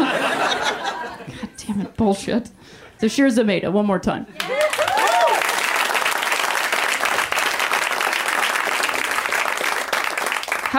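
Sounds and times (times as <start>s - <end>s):
laughter: 0.0s - 2.0s
speech: 2.0s - 4.4s
audience clapping: 4.4s - 10.7s.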